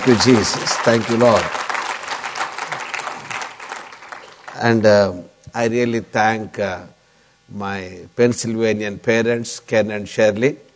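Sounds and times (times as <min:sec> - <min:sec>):
speech: 0:00.0 - 0:01.6, 0:04.6 - 0:10.7
church congregation clapping during a worship service: 0:00.0 - 0:05.1.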